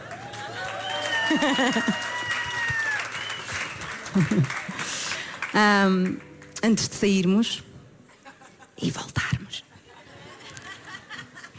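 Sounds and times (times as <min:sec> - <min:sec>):
audience clapping: 0:00.0 - 0:06.6
laughter: 0:01.2 - 0:02.8, 0:03.7 - 0:05.3, 0:08.1 - 0:08.8, 0:09.7 - 0:11.5
speech: 0:01.3 - 0:02.1, 0:04.2 - 0:04.6, 0:05.6 - 0:07.7, 0:08.8 - 0:09.2.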